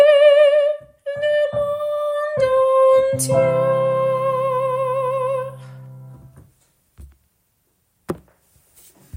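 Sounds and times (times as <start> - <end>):
soprano voice: 0.0 - 6.3.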